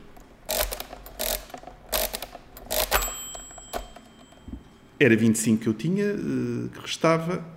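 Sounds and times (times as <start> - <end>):
mechanical calculating machine being cranked, gears ratcheting: 0.5 - 3.2
mechanical calculating machine bell ring: 2.8 - 5.0
speech: 5.0 - 7.5.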